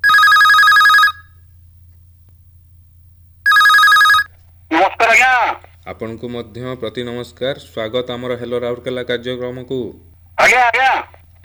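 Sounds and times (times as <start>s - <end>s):
telephone ringing for an incoming call to a radio phone-in show: 0.0s - 1.4s, 3.5s - 5.4s
speech: 5.8s - 11.4s.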